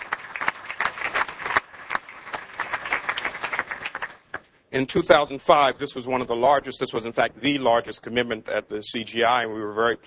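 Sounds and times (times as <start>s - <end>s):
audience applause: 0.0s - 4.4s
speech: 4.7s - 10.0s.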